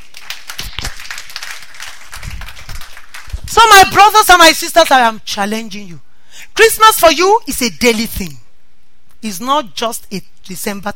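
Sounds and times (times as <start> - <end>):
audience clapping: 0.0 - 3.8
speech: 3.5 - 6.0, 6.6 - 8.4, 9.2 - 10.9.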